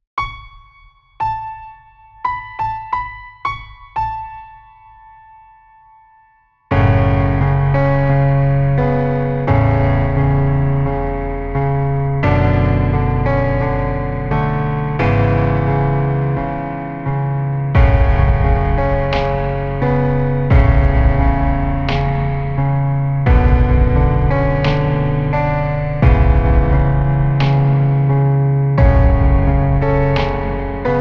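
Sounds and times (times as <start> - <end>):
piano: 0.2 - 30.9.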